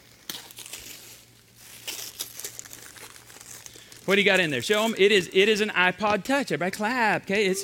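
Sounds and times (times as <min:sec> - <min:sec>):
gift package wrapping crinkling and rustling as torn open: 0:00.0 - 0:05.4
speech: 0:04.1 - 0:07.6.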